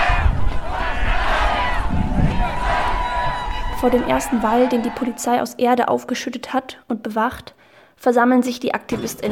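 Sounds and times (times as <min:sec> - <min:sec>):
protest crowd chanting slogans: 0:00.0 - 0:05.3
speech: 0:03.8 - 0:09.3.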